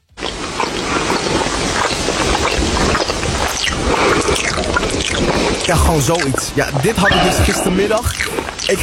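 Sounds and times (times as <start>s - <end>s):
loud smacking while chewing popcorn: 0.2s - 5.4s
speech: 5.7s - 8.8s.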